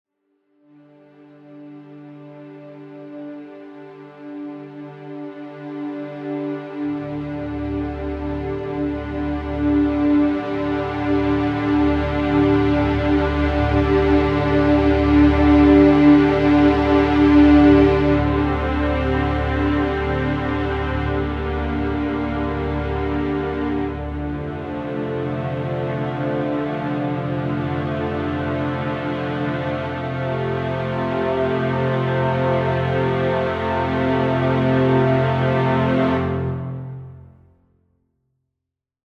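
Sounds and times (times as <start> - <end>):
string ensemble: 0.8 - 37.4.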